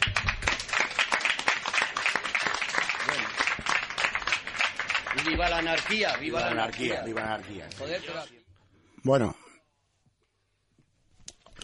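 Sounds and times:
crowd applauding: 0.0 - 8.3
speech: 5.2 - 8.4, 9.0 - 9.4.

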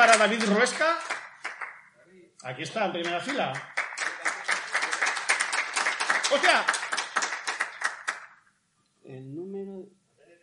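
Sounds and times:
speech: 0.0 - 1.2, 2.4 - 3.8, 6.3 - 6.8, 9.1 - 10.0
audience applause: 0.0 - 1.8, 3.0 - 8.4.

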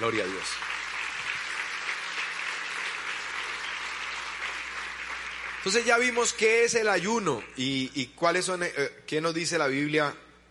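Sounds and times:
speech: 0.0 - 0.7, 5.6 - 10.2
audience applauding: 0.0 - 7.9.

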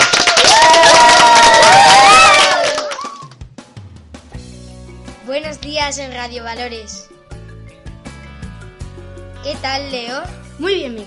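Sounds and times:
many high young voices shouting and whooping: 0.0 - 3.3
people clapping: 0.0 - 3.5
speech: 5.9 - 7.2, 9.4 - 11.0.

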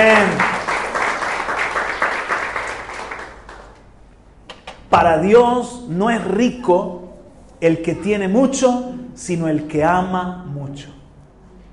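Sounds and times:
speech: 0.0 - 0.4, 5.0 - 7.0, 7.6 - 11.0
audience applause: 0.0 - 3.8.

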